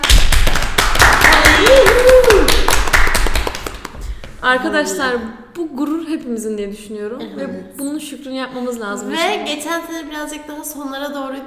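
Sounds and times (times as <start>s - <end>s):
applause: 0.0s - 4.0s
speech: 4.4s - 11.4s.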